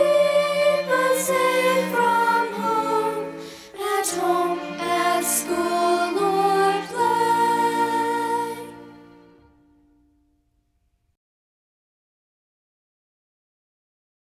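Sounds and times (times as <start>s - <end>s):
song: 0.0s - 9.9s.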